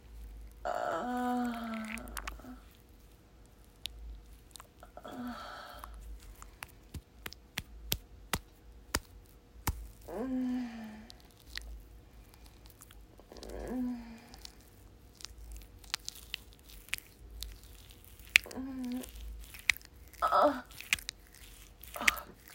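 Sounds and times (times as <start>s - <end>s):
wet sounds: 0.4s - 22.5s
person moaning: 0.6s - 2.6s, 4.9s - 5.8s, 10.1s - 11.2s, 13.3s - 14.4s, 18.4s - 19.2s, 20.2s - 20.7s
person whimpering: 0.6s - 2.6s, 10.1s - 11.1s, 18.4s - 19.2s, 20.2s - 20.7s.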